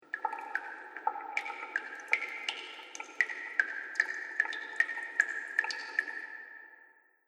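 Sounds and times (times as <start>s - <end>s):
water dripping in a cave: 0.0s - 7.2s.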